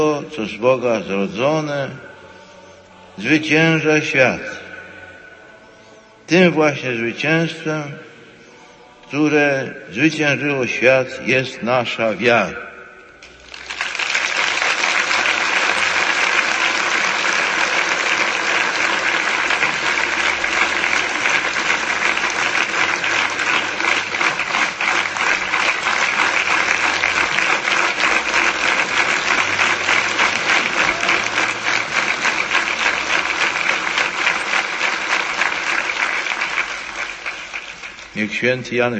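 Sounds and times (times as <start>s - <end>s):
speech: 0.0s - 2.1s, 3.2s - 4.6s, 6.3s - 8.1s, 9.1s - 12.7s, 38.4s - 38.9s
audience applause: 13.2s - 38.4s.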